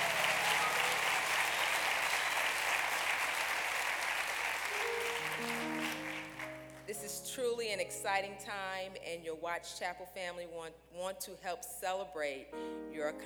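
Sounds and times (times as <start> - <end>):
audience applause: 0.0 - 6.9
speech: 6.9 - 13.2.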